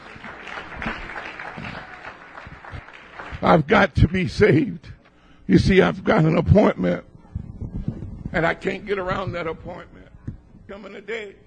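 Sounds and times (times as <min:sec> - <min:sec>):
audience clapping hands: 0:00.0 - 0:04.7
speech: 0:03.4 - 0:04.9, 0:05.5 - 0:07.1, 0:08.3 - 0:10.0, 0:10.7 - 0:11.4.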